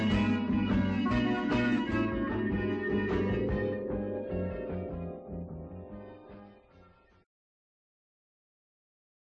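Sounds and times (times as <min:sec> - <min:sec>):
pop rock guitar: 0:00.0 - 0:05.2
pop rock organ: 0:00.0 - 0:07.0.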